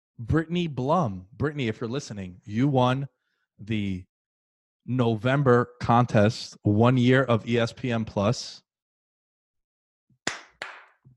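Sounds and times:
speech: 0.2 - 4.1, 4.8 - 8.6
hand claps: 10.2 - 11.1.

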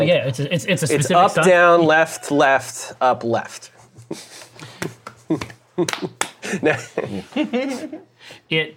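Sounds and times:
speech: 0.0 - 8.7
patterned sharp hand claps: 4.8 - 6.4.

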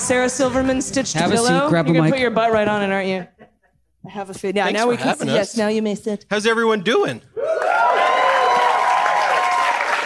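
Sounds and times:
speech: 0.1 - 3.4, 4.0 - 7.9
audience applause: 7.4 - 10.0
people cheering and whooping: 7.4 - 10.0.

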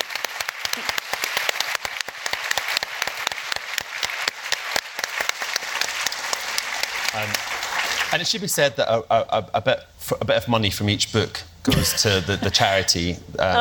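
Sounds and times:
audience applause: 0.0 - 8.2
speech: 7.2 - 13.5.

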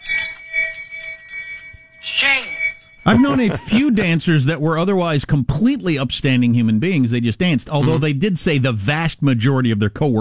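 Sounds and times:
handbell clanging from phone app: 0.0 - 4.3
laughter: 3.1 - 4.5, 7.7 - 8.2
speech: 3.1 - 10.1.

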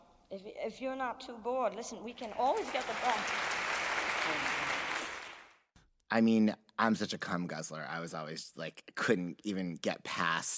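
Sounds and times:
speech: 0.3 - 4.8, 6.1 - 10.5
audience applause: 2.3 - 5.6.

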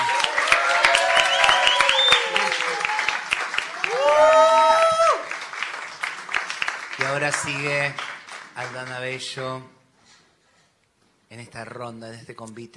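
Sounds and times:
loud audience applause: 0.0 - 9.4
speech: 7.2 - 9.8, 11.3 - 12.7.

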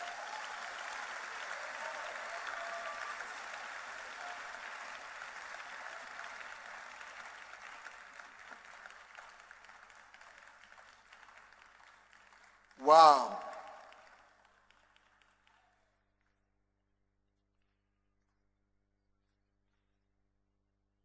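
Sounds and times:
audience clapping: 0.0 - 16.0
speech: 12.8 - 13.4.

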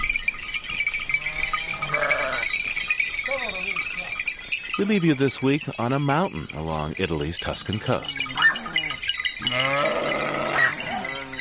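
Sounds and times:
small bells tinkling: 0.0 - 11.4
shepherd's flock of sheep bleating: 1.2 - 2.5, 8.0 - 11.4
speech: 4.8 - 8.4.

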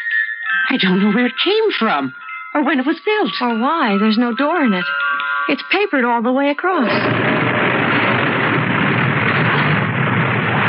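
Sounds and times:
speech: 0.5 - 7.6
gust of wind blowing out a candle: 6.9 - 10.6.

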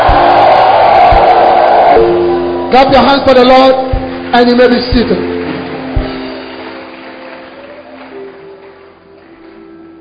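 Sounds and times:
audience shouting to the Lord: 0.0 - 2.6
speech: 2.7 - 5.3.

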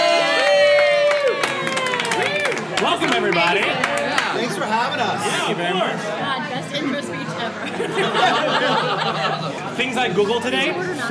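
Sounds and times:
crowd cheering at New World Stages: 0.0 - 5.5
speech: 3.0 - 11.1
laughter: 7.6 - 9.8.

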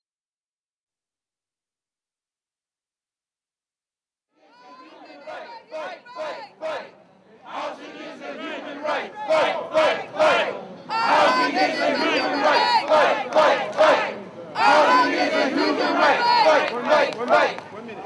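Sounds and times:
crowd shouting in chant-like waves: 4.4 - 18.0.

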